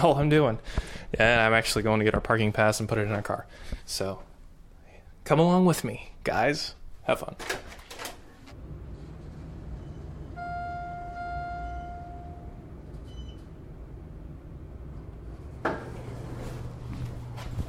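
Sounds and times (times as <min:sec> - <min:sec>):
speech: 0:00.0 - 0:04.3, 0:05.2 - 0:07.8
elevator noises: 0:08.6 - 0:17.6.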